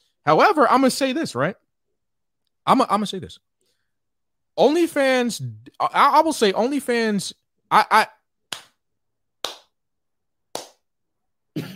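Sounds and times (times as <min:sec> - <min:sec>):
speech: 0:00.2 - 0:01.6, 0:02.6 - 0:03.5, 0:04.6 - 0:08.2
slow hand claps: 0:08.5 - 0:08.8, 0:09.4 - 0:09.8, 0:10.5 - 0:10.9.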